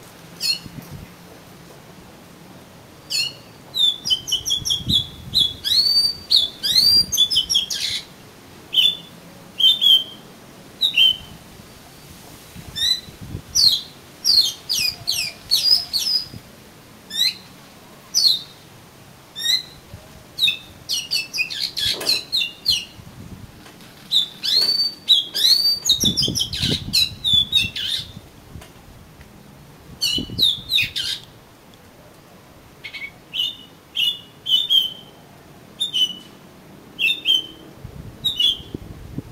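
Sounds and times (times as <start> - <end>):
Oriental magpie-robin song: 0.4 - 0.7, 3.1 - 8.1, 8.7 - 10.2, 10.8 - 11.4, 12.8 - 16.4, 17.1 - 17.5, 18.2 - 18.6, 19.4 - 19.8, 20.4 - 23.0, 24.1 - 28.2, 30.0 - 31.3, 32.8 - 35.2, 35.8 - 36.4, 37.0 - 37.6, 38.2 - 38.7.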